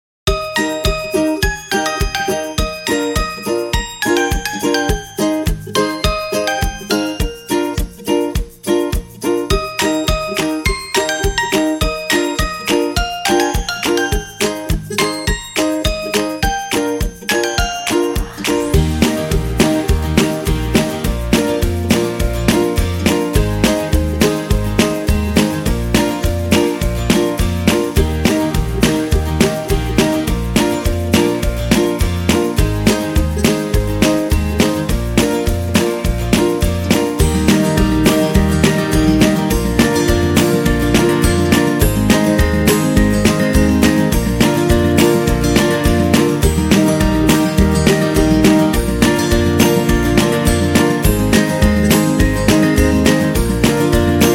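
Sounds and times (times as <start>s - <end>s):
happy kids music: 0.3s - 54.3s.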